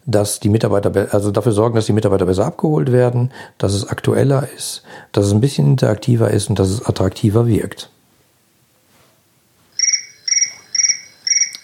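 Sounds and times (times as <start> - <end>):
speech: 0.1 - 8.0
telephone ringing: 9.7 - 11.6.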